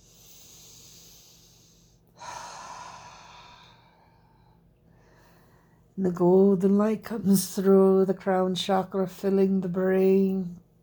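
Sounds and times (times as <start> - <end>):
deep breathing during a guided meditation: 0.0 - 6.0
speech: 6.0 - 10.6.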